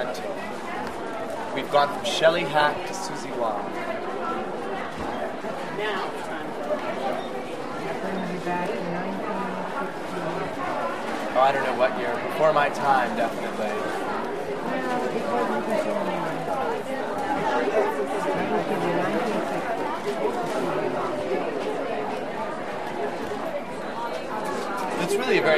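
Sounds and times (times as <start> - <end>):
salespeople talking in a large department store: 0.0 - 25.5
mostly female walla in a large department store: 3.9 - 11.1, 14.1 - 22.8.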